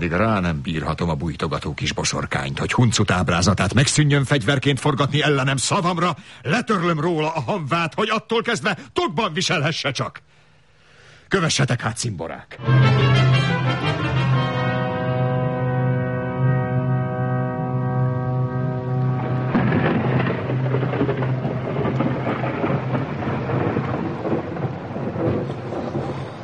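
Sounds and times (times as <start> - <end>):
speech: 0.0 - 10.4, 11.3 - 14.0
steady humming drone: 12.6 - 24.7
rumbling thunder: 15.6 - 26.4
torrential pouring rain: 18.5 - 26.4.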